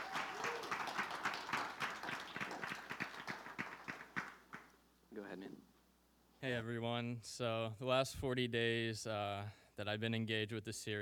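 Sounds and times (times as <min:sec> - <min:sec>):
audience applauding a speaker onto the stage: 0:00.0 - 0:04.7
speech: 0:05.3 - 0:05.7, 0:06.4 - 0:10.9.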